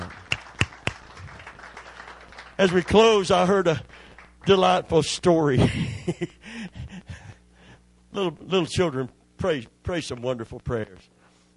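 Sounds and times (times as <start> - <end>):
audience hand claps: 0.0 - 3.1, 3.9 - 4.6
faint low hum: 0.0 - 11.5
speech: 2.6 - 6.8, 8.2 - 11.2.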